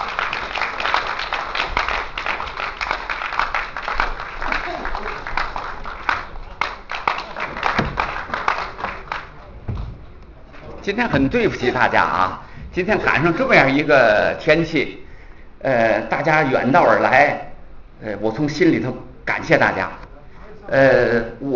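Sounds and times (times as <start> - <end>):
audience applause welcoming speaker: 0.0 - 10.7
speech: 10.9 - 15.0, 15.6 - 20.0, 20.7 - 21.5.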